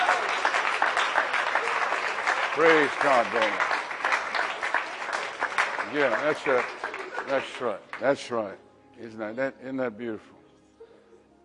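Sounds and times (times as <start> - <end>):
large crowd applauding: 0.0 - 8.4
speech: 2.6 - 3.8, 5.9 - 10.4.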